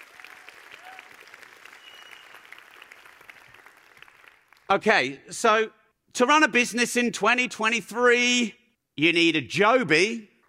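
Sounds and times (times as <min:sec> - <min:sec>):
audience applause: 0:00.0 - 0:04.7
speech: 0:04.7 - 0:10.3.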